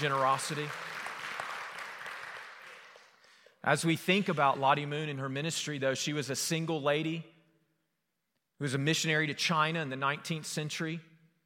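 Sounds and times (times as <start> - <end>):
speech: 0.0 - 0.9, 3.6 - 7.3, 8.6 - 11.1
audience applause: 0.0 - 3.3.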